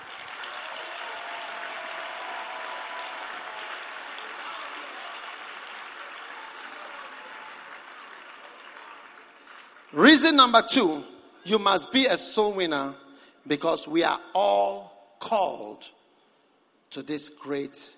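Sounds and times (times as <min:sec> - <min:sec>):
audience clapping: 0:00.0 - 0:10.7
speech: 0:09.9 - 0:16.0, 0:16.9 - 0:17.9.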